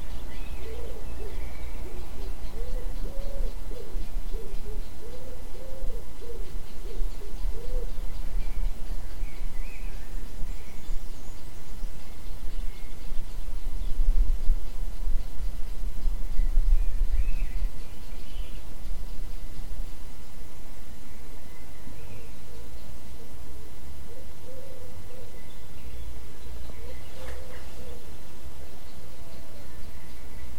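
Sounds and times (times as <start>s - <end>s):
owl: 0.0s - 10.2s, 24.0s - 25.8s, 26.5s - 28.3s
birds: 0.0s - 30.5s.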